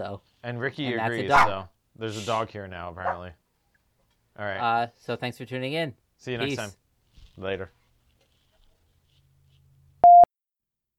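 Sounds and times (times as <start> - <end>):
speech: 0.0 - 3.4, 4.4 - 6.8, 7.4 - 7.8
phone busy tone beep after hanging up: 10.0 - 10.3.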